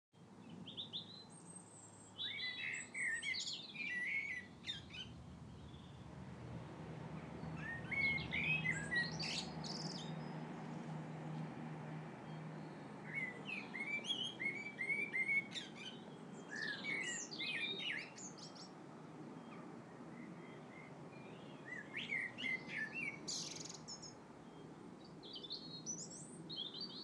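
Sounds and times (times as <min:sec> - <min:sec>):
evening garden birds singing: 0:00.4 - 0:06.1, 0:07.1 - 0:11.6, 0:12.2 - 0:27.0.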